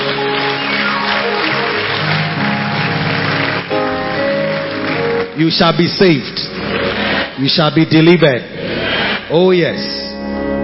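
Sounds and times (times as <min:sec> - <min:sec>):
audience clapping hands: 0:00.0 - 0:08.2
steady musical tones: 0:00.0 - 0:09.2
speech: 0:05.4 - 0:06.6, 0:07.4 - 0:08.6, 0:09.3 - 0:10.0.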